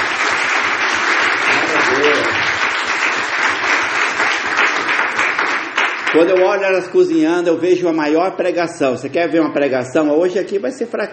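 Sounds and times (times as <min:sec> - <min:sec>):
audience applause: 0:00.0 - 0:07.0
speech: 0:06.1 - 0:11.1.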